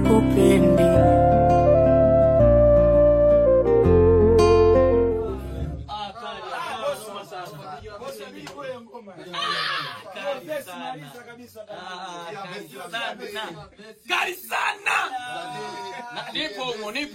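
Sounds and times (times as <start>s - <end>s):
acoustic music: 0.0s - 5.9s
laughter: 15.0s - 16.8s.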